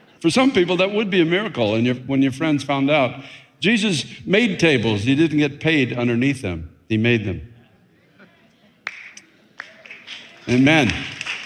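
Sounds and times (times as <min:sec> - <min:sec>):
speech: 0:00.2 - 0:07.5, 0:10.5 - 0:11.2
weak sparse clapping from a church congregation during a sermon: 0:08.8 - 0:11.4.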